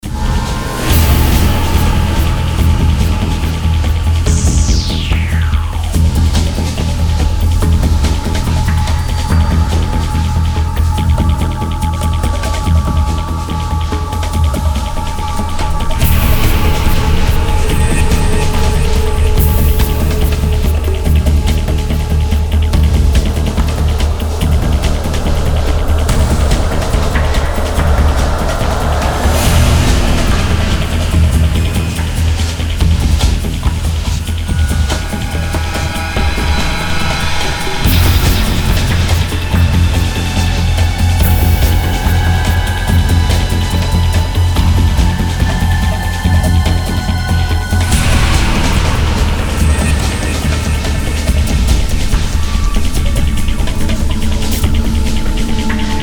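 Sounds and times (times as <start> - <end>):
danger music: 0.0 - 56.0.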